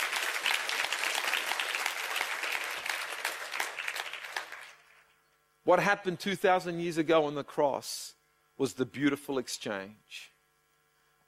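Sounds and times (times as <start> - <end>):
audience applause: 0.0 - 4.9
speech: 5.7 - 10.3.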